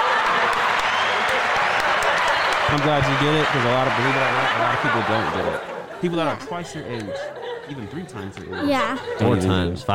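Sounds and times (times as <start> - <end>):
crowd applauding: 0.0 - 6.2
laughter: 1.3 - 9.9
speech: 2.7 - 9.9.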